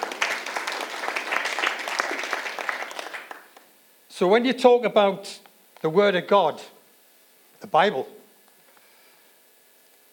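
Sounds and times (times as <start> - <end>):
audience clapping: 0.0 - 3.7
speech: 4.2 - 6.7, 7.6 - 8.2.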